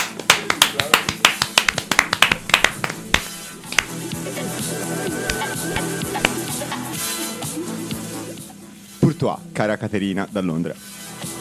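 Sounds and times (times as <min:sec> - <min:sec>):
one person clapping hands: 0:00.0 - 0:04.0, 0:05.3 - 0:06.4
speech: 0:09.2 - 0:10.9.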